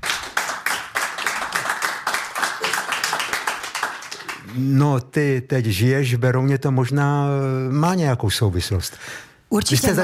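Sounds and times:
applause, hands clapping: 0.0 - 4.5
speech: 4.6 - 10.0.

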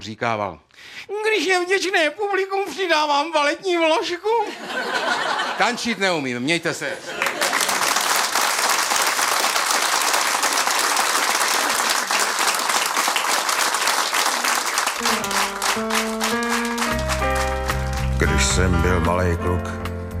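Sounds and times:
speech: 0.0 - 7.4, 18.6 - 19.9
laughter: 4.4 - 6.0, 6.8 - 8.0
audience applause: 7.1 - 18.5
sustained musical tones: 15.0 - 19.4.

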